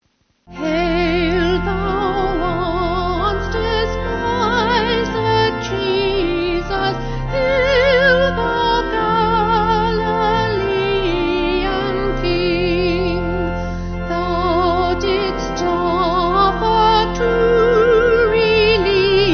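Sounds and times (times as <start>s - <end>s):
vocal organ: 0.5s - 19.3s.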